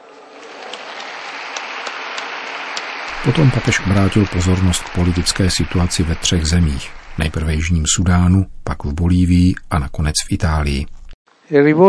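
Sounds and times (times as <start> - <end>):
crowd applause: 0.0 - 8.2
speech: 3.2 - 11.8.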